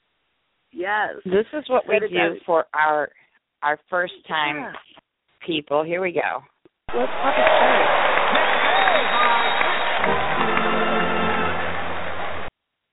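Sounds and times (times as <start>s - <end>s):
speech: 0.8s - 8.1s, 8.8s - 10.6s
recorded studio audience applause sound effect: 6.9s - 12.5s.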